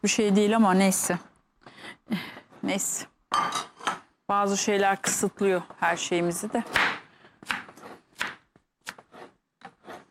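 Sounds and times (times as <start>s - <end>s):
speech: 0.0s - 1.3s, 1.9s - 3.7s, 4.3s - 7.6s
knife chopping food: 6.6s - 10.0s.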